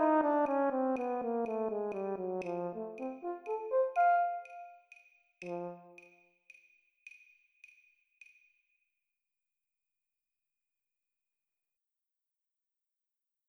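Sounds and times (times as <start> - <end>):
horn playing at 40 BPM: 0.0 - 4.8, 5.4 - 6.0.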